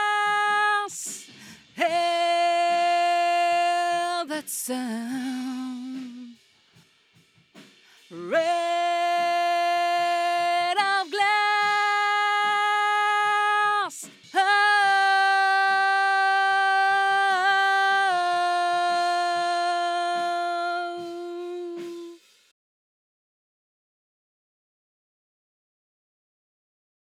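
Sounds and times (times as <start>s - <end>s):
vocals: 0.0s - 6.5s, 7.8s - 22.4s.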